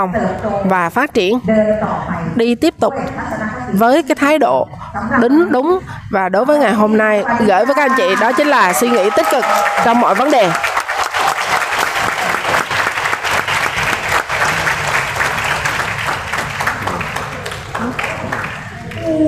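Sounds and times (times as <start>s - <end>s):
speech: 0.0s - 10.7s
crowd applause: 7.5s - 19.1s.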